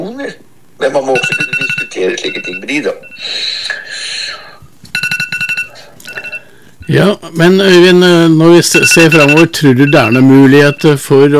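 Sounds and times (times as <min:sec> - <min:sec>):
phone ringing: 0:01.0 - 0:03.6, 0:04.9 - 0:07.1, 0:08.5 - 0:11.1
speech: 0:02.0 - 0:03.7, 0:06.9 - 0:11.3.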